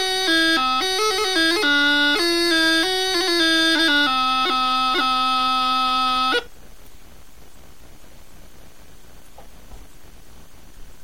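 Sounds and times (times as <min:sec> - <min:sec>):
gaita chanter melody: 0:00.0 - 0:06.5.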